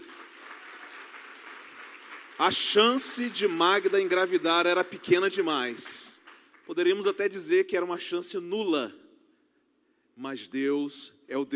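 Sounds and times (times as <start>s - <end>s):
audience applause: 0.0s - 6.7s
speech: 2.4s - 6.1s, 6.7s - 9.0s, 10.2s - 11.5s.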